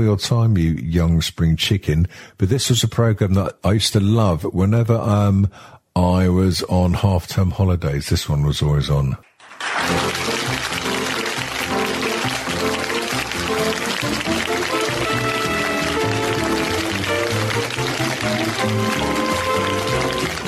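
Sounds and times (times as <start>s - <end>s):
speech: 0.0s - 10.4s
studio audience clapping: 9.2s - 20.4s
bouncy 1970s TV theme tune: 9.6s - 20.4s.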